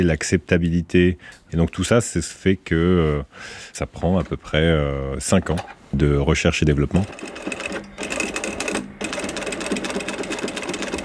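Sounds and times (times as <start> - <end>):
speech: 0.0 - 7.6
sewing machine stitching a strap with thick thread: 6.9 - 11.0.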